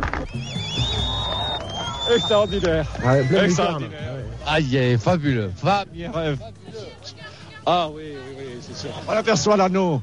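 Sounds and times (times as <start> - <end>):
crowd applauding during solar eclipse: 0.0 - 3.6
speech: 0.3 - 0.8, 2.1 - 10.0.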